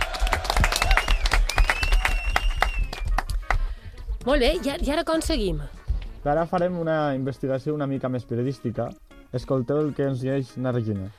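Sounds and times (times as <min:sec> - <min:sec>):
group applause: 0:00.0 - 0:03.7
speech: 0:04.2 - 0:11.1.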